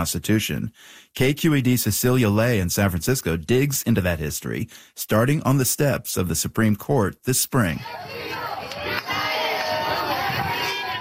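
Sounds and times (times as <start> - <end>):
speech: 0.0 - 8.4
supporters cheering and shouting outside the Supreme Court: 7.8 - 10.9.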